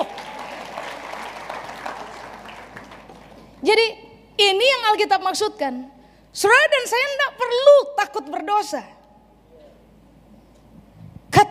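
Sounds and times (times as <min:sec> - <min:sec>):
crowd applause: 0:00.0 - 0:03.6
speech: 0:03.6 - 0:09.0.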